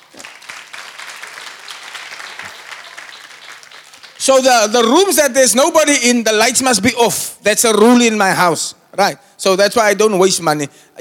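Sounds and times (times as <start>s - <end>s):
audience clapping: 0.0s - 5.0s
speech: 4.2s - 10.9s.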